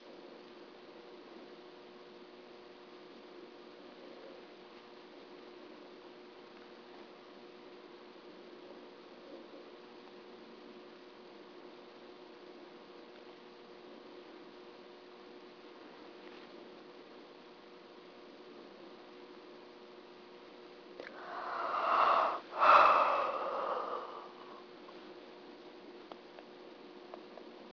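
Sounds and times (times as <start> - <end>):
person sighing: 21.0 - 24.6.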